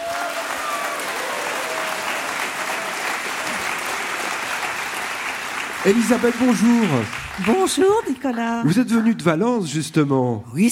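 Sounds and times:
audience applause: 0.0s - 8.4s
speech: 5.8s - 10.6s.

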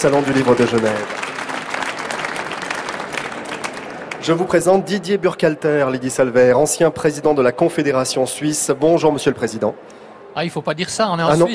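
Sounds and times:
speech: 0.0s - 1.2s, 4.2s - 11.5s
audience applause at the Geneva Book Fair: 0.0s - 4.6s.

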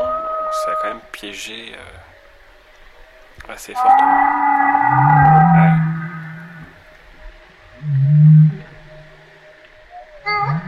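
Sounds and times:
humpback whale vocalizing in reply: 0.0s - 1.1s, 3.8s - 10.6s
quiet steady hum: 0.0s - 10.6s
speech: 0.5s - 2.1s, 3.4s - 5.3s.

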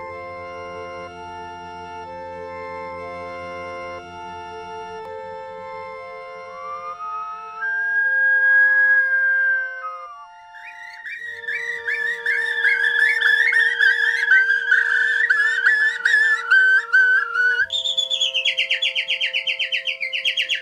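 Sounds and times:
person whistling birdsong imitation: 7.6s - 10.0s, 10.6s - 20.5s
sustained instrumental tones: 9.8s - 20.5s.

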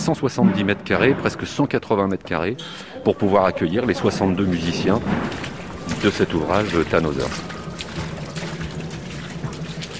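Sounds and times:
speech: 0.0s - 5.4s, 6.0s - 7.6s
technicians splashing through shallow water on a flooded opera stage: 3.7s - 9.9s.

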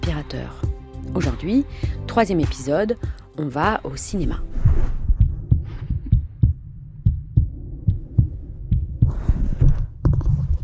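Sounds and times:
speech: 0.2s - 5.0s
steady heartbeat with low thumping: 4.2s - 10.6s.

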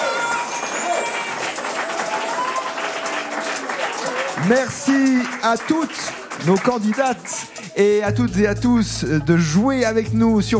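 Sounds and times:
applause: 0.0s - 7.8s
speech: 4.4s - 10.5s.

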